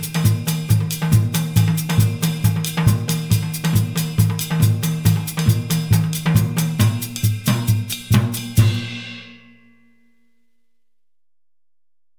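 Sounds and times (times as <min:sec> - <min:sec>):
drum kit playing West African gahu rhythm: 0:00.0 - 0:09.4.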